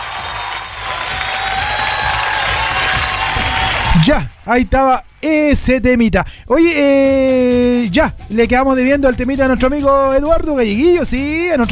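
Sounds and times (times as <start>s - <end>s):
applause: 0.0s - 4.5s
speech: 4.0s - 11.7s.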